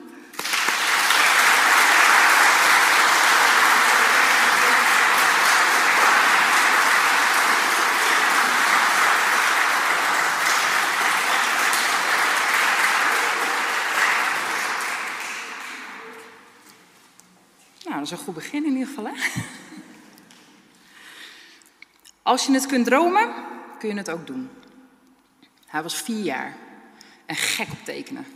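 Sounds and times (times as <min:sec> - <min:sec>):
audience applause: 0:00.0 - 0:16.5
speech: 0:18.1 - 0:19.6, 0:22.3 - 0:24.6, 0:25.7 - 0:26.6, 0:27.3 - 0:28.3.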